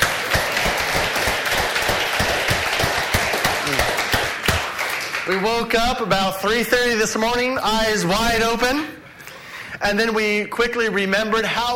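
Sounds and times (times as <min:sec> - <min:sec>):
audience applause: 0:00.0 - 0:05.8
speech: 0:05.3 - 0:09.0, 0:09.8 - 0:11.7.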